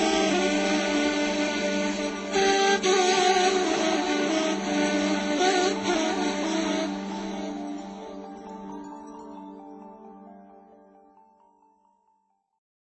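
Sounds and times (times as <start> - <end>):
ney flute: 0.0 - 8.9.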